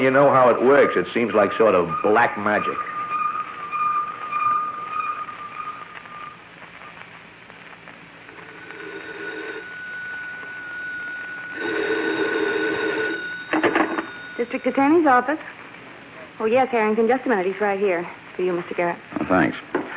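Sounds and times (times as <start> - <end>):
speech: 0.0 - 3.0, 14.6 - 15.6, 16.4 - 19.7
wire photo machine mechanical hum: 0.0 - 19.9
wire photo machine electronic tones: 0.1 - 7.0, 8.3 - 15.2.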